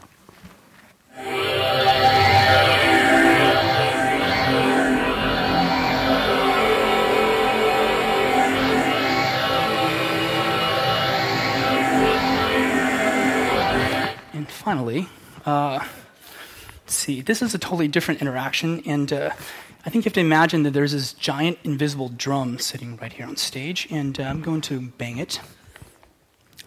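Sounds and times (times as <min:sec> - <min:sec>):
dense layered drone with shimmering upper tones: 0:01.2 - 0:14.4
speech: 0:17.1 - 0:25.6.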